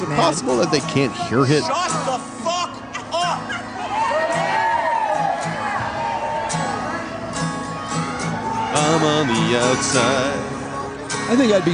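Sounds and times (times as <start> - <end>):
speech: 0.0 - 2.3, 8.8 - 10.5, 11.3 - 11.7
concert crowd chattering: 0.0 - 11.7
concert crowd shouts and whoops: 2.9 - 9.8.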